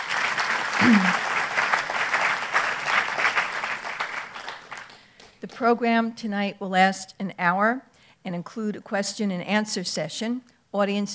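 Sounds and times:
audience applause at an evening historical society program: 0:00.0 - 0:05.0
speech: 0:05.6 - 0:11.1.

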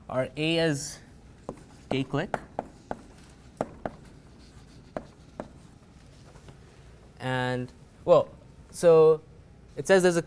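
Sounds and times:
speech: 0:00.1 - 0:01.0, 0:01.9 - 0:02.5, 0:07.2 - 0:10.2
writing on a board during a lecture on NP-complete problems: 0:01.4 - 0:06.2.

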